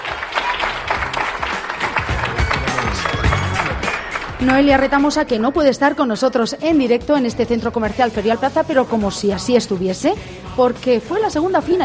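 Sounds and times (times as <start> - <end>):
audience applause: 0.0 - 4.9
speech: 4.4 - 11.8.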